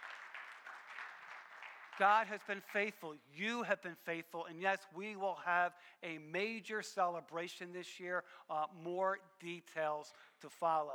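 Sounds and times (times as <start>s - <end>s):
audience clapping: 0.0s - 3.0s
speech: 2.0s - 10.9s.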